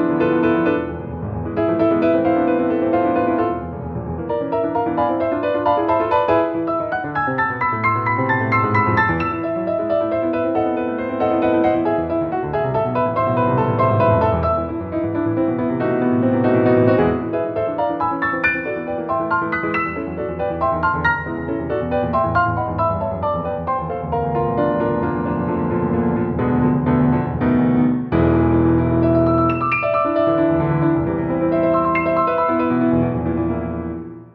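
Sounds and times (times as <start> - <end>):
classical piano etude: 0.0 - 34.2.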